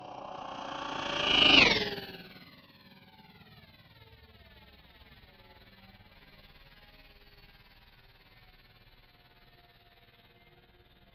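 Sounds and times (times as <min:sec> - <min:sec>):
heavy spaceship passing by: 0:00.0 - 0:02.1.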